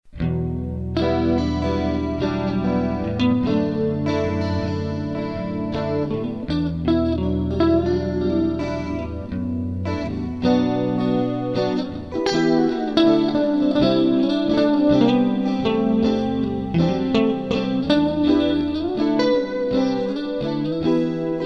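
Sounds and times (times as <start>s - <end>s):
instrumental music: 0.1s - 21.4s.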